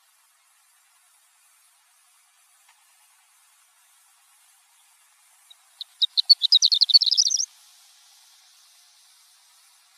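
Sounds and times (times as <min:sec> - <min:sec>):
horned lark chirping and twittering: 0:05.5 - 0:07.5.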